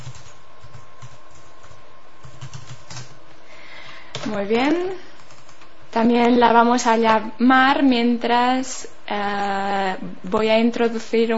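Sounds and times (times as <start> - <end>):
typing a blog address into a chat on a computer keyboard: 0.0 - 3.2, 4.1 - 5.7
speech: 4.3 - 5.1, 6.0 - 11.3.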